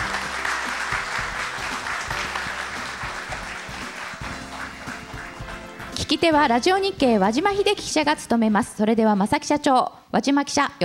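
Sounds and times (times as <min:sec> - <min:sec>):
crowd applause: 0:00.0 - 0:06.0
speech: 0:06.1 - 0:10.8.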